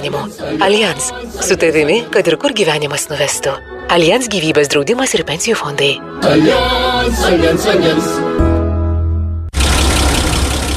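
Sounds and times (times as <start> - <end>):
speech: 0.0 - 8.5
20-year-old car engine rough rumble: 9.6 - 10.7.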